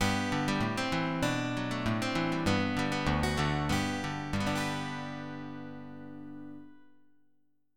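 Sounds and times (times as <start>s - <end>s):
steel guitar: 0.0s - 6.8s.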